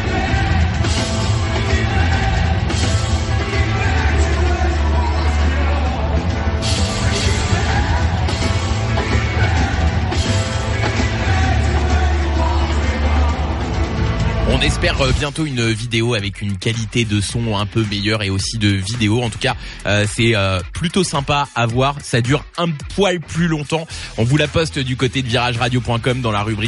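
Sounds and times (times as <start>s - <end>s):
concert crowd noise with occasional yells: 0.0s - 15.2s
amplified live concert music recorded from within the audience: 0.0s - 26.6s
speech: 14.6s - 26.6s.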